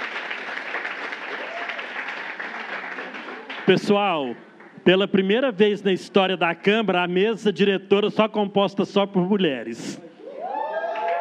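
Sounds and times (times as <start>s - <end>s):
audience applause: 0.0s - 4.8s, 10.5s - 11.2s
speech: 3.7s - 10.1s.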